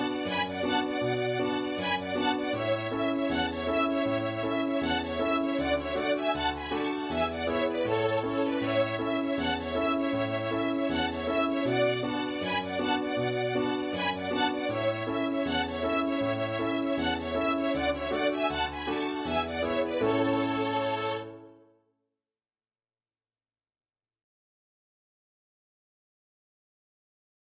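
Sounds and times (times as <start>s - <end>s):
high folk tune melody: 0.0s - 21.6s.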